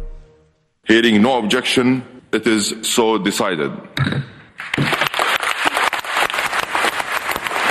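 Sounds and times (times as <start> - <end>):
speech: 0.9 - 4.9
applause at climate conference in Dubai: 4.6 - 7.7.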